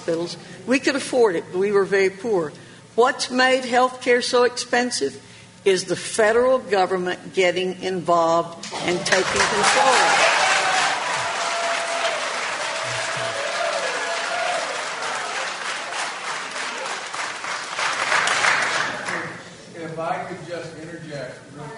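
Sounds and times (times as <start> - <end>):
speech: 0.0 - 10.2
large audience applause: 9.1 - 19.4.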